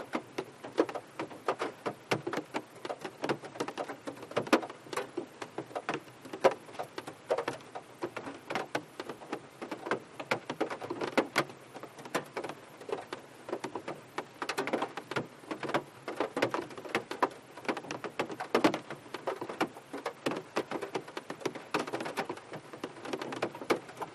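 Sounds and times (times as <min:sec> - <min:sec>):
light rain with heavy drips heard inside a car: 0:00.0 - 0:24.1.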